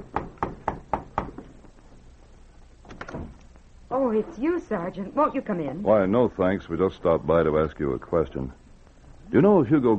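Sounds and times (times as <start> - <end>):
knocks on a wooden hotel room door: 0.1 - 1.4
speech: 4.0 - 8.6, 9.3 - 9.9.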